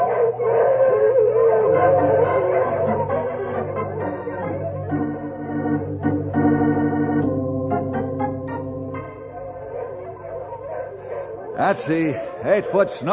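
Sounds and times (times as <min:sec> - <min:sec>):
sled dogs yipping and barking: 0:00.0 - 0:05.2, 0:08.2 - 0:13.0
pack of sled dogs howling: 0:00.0 - 0:06.5, 0:07.4 - 0:13.1
speech: 0:11.7 - 0:13.1.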